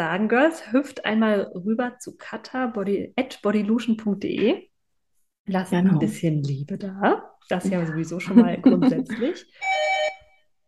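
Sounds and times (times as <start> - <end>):
speech: 0.0 - 4.7, 5.5 - 9.9
laughter: 7.8 - 9.6
doorbell ringing: 9.6 - 10.6.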